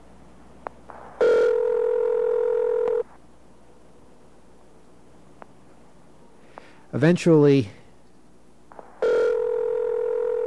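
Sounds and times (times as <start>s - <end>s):
recorded telephone ring tone: 1.2s - 3.0s, 9.0s - 10.4s
speech: 7.0s - 7.8s.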